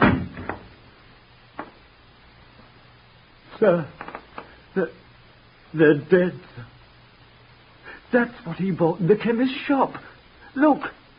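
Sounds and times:
door thudding shut: 0:00.0 - 0:00.7
speech: 0:03.6 - 0:04.0, 0:04.8 - 0:05.0, 0:05.7 - 0:06.7, 0:08.1 - 0:11.0.

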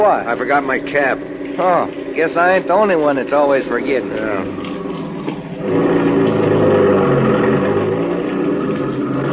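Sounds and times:
speech: 0:00.0 - 0:04.7, 0:05.6 - 0:05.9
car engine droning during a U-turn on a road: 0:00.0 - 0:09.3.

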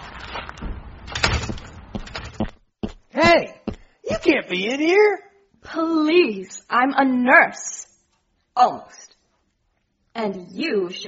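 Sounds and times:
door being pulled open: 0:00.2 - 0:02.5
speech: 0:04.3 - 0:07.8, 0:08.6 - 0:09.1, 0:10.2 - 0:11.0.

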